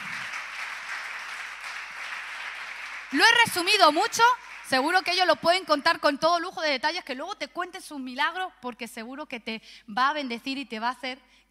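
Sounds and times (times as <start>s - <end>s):
audience applause: 0.0s - 5.1s
speech: 3.1s - 11.4s.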